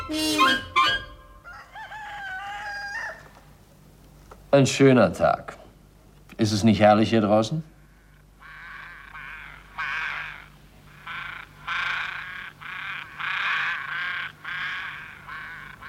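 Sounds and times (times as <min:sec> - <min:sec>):
ravens calling: 0:00.0 - 0:03.6, 0:07.7 - 0:15.8
speech: 0:04.6 - 0:05.6, 0:06.4 - 0:07.7.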